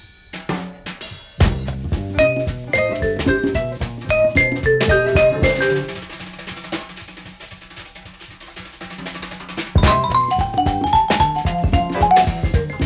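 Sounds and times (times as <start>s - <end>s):
jazz music: 1.4s - 6.8s, 9.8s - 12.8s.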